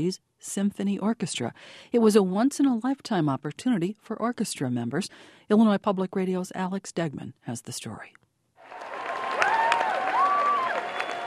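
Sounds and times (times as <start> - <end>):
speech: 0.0 - 8.9
concert crowd applauding and cheering: 8.6 - 11.2.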